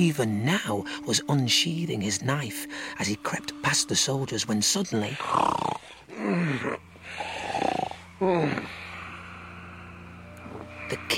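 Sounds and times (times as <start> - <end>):
speech: 0.0 - 7.2, 8.2 - 8.8
loud snoring: 5.0 - 9.7.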